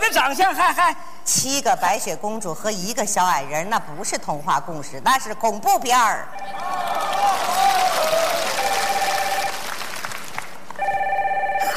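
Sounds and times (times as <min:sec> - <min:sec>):
speech: 0:00.1 - 0:08.8
clapping-like noise: 0:06.8 - 0:10.8
telephone ringing with electronic trilling tone: 0:08.5 - 0:09.6, 0:10.8 - 0:11.7.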